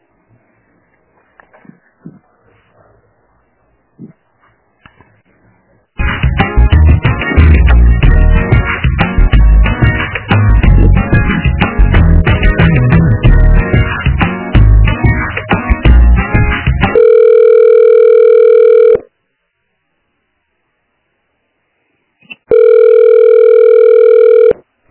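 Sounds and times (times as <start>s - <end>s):
telephone hold music: 6.0s - 17.0s
loud steady phone tone during a call transfer: 16.9s - 19.1s, 22.5s - 24.6s.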